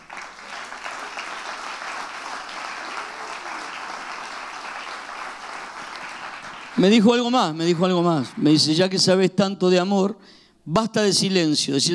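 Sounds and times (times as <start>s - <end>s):
audience applauding: 0.0s - 8.8s
speech: 6.8s - 11.9s.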